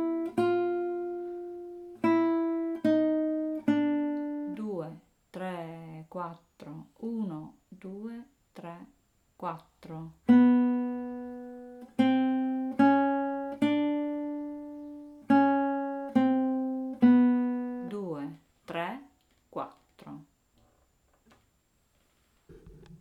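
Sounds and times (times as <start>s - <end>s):
guitar: 0.0s - 6.8s, 9.5s - 20.8s.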